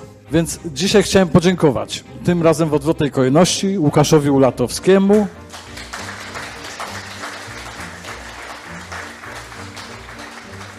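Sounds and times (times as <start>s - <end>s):
speech: 0.3s - 5.4s
audience applause: 5.5s - 10.7s.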